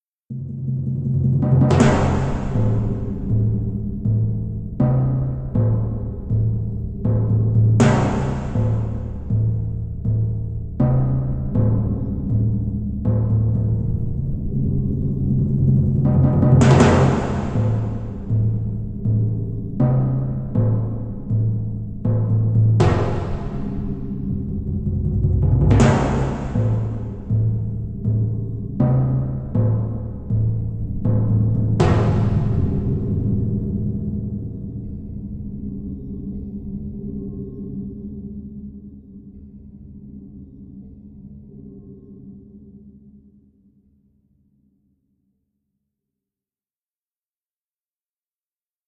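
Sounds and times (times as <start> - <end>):
timpani: 0.3 - 35.0.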